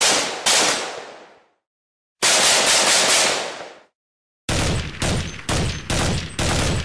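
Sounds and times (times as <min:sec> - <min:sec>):
carbine gunshot: 0:00.0 - 0:01.4, 0:02.2 - 0:03.9, 0:04.5 - 0:06.8.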